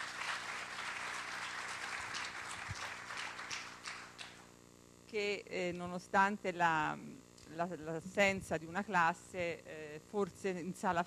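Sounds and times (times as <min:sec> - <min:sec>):
welcoming applause: 0:00.0 - 0:04.5
speech: 0:05.1 - 0:11.0.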